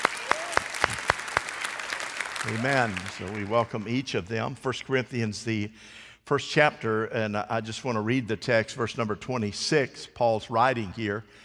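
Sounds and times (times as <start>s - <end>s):
church audience clapping to welcome online viewers: 0.0s - 4.1s
speech: 2.4s - 11.4s.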